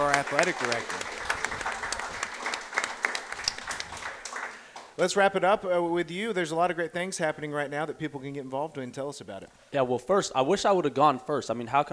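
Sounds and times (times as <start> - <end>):
crowd clapping: 0.0 - 5.0
speech: 0.3 - 1.0, 5.0 - 11.9.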